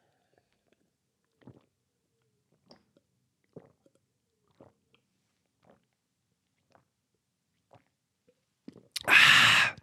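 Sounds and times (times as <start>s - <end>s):
person gulping a powdered greens drink: 0.3s - 1.8s, 2.5s - 5.0s, 5.6s - 6.0s, 8.6s - 9.8s
loud breathy exhale: 9.1s - 9.8s.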